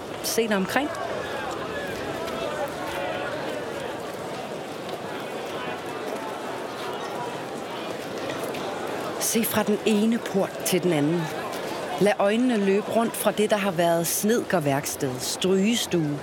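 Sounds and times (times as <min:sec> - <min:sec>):
voices murmuring in a farmyard: 0:00.0 - 0:16.2
speech: 0:00.3 - 0:01.2, 0:09.3 - 0:11.4, 0:12.0 - 0:16.2
horse hooves clip-clopping in a farmyard: 0:00.8 - 0:09.2.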